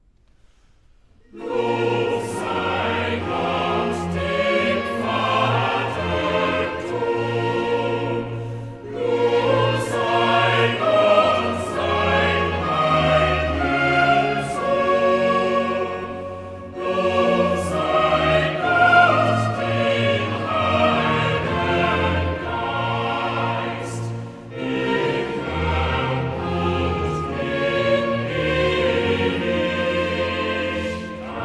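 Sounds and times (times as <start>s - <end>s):
choral duet: 1.2s - 31.4s.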